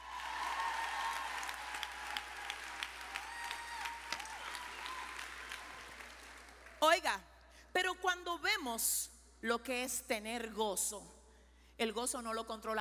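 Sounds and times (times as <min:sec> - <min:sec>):
audience applause: 0:00.0 - 0:06.8
speech: 0:06.8 - 0:11.2, 0:11.8 - 0:12.8.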